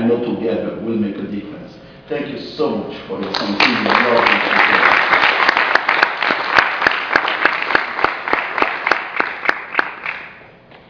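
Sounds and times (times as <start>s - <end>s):
speech: 0.1s - 5.1s
audience applause: 3.2s - 10.4s.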